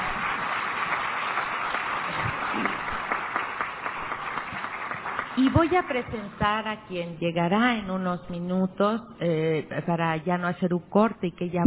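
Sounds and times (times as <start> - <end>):
applause: 0.0 - 6.5
speech: 5.4 - 11.6.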